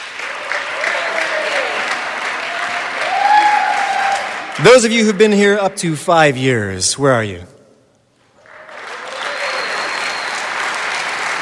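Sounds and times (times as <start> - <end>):
audience applause: 0.0 - 5.2, 8.4 - 11.4
speech: 4.6 - 7.5.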